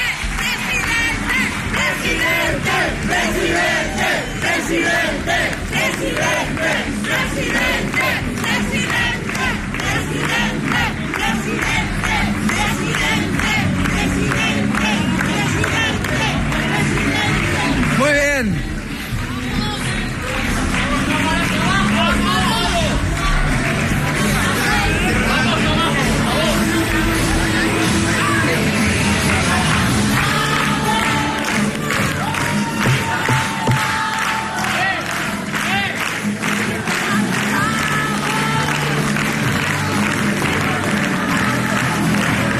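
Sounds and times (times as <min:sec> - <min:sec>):
crowd cheering and shouting at arrival of Jorge Azcón: 0:00.0 - 0:42.5.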